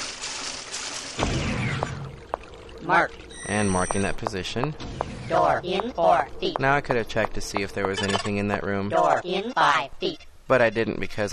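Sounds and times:
water sloshing as a player wades through a flooded room in a video game: 0.0 - 7.8
speech: 2.9 - 11.3.

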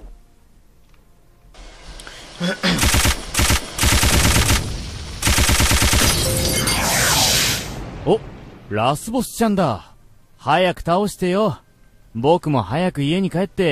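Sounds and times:
speech: 2.4 - 3.0, 8.1 - 11.6, 12.2 - 13.7
video game machine gun fire: 2.7 - 6.7.

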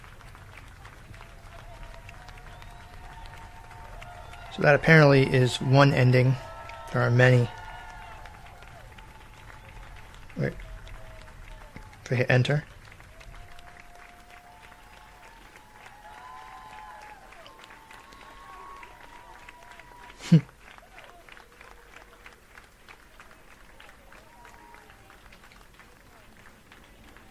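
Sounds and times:
crowd clapping and cheering: 0.0 - 27.2
speech: 4.6 - 7.6, 12.1 - 12.8.

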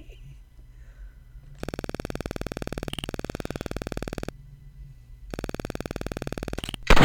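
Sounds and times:
buzzy electronic tones from an old computer target-shooting game: 1.5 - 4.4, 5.3 - 6.9.

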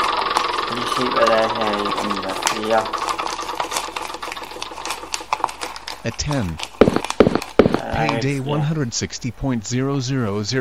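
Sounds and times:
video board game spinner wheel clicking: 0.0 - 7.8
speech: 0.8 - 3.0, 6.0 - 6.7, 8.0 - 10.5.

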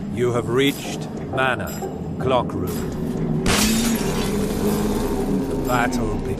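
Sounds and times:
speech: 0.2 - 3.1, 4.7 - 5.0, 5.7 - 6.3
window glass breaking: 3.5 - 4.3.

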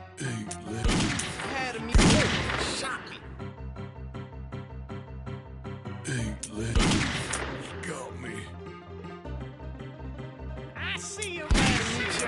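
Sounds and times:
gunfire in a video game ambush: 0.8 - 3.1, 6.7 - 7.8, 11.5 - 12.2.

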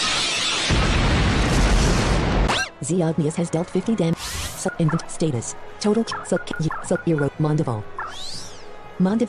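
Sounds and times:
Draco Blitz attack blast in a turn-based video game battle: 0.7 - 2.5
speech: 2.8 - 8.3, 9.0 - 9.2.

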